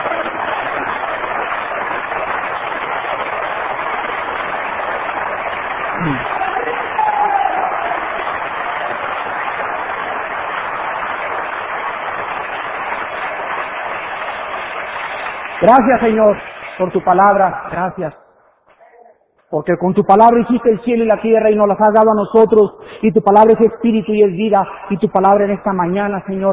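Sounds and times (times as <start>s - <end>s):
audience applause: 0.0s - 17.0s
speech: 15.7s - 18.2s, 19.5s - 26.5s.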